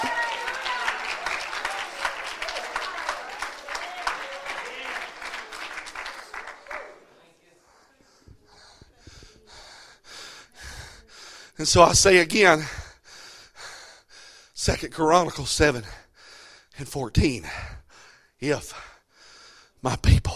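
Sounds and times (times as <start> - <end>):
audience clapping: 0.0 - 7.2
speech: 11.6 - 12.8, 14.6 - 16.0, 16.8 - 17.7, 18.4 - 18.9, 19.8 - 20.1.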